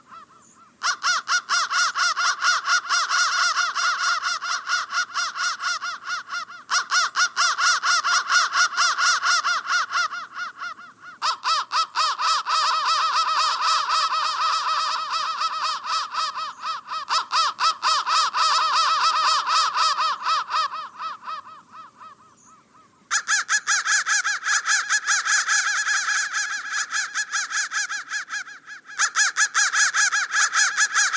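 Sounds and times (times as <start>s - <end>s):
crow caws: 0.0s - 31.1s.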